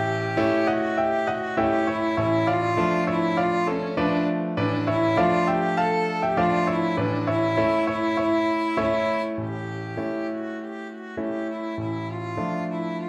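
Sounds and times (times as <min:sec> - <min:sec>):
violin: 0:00.0 - 0:13.0.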